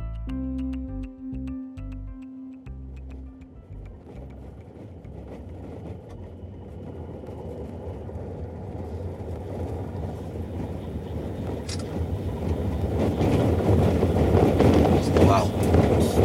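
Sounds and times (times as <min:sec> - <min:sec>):
large jeep engine and road rumble: 0:00.0 - 0:16.2
faint rattles and bumps: 0:03.8 - 0:16.2.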